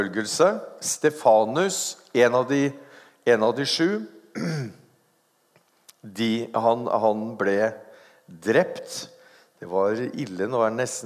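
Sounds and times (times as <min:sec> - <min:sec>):
speech: 0:00.0 - 0:04.8, 0:06.0 - 0:11.0
harsh throat-clearing cough: 0:04.4 - 0:04.8.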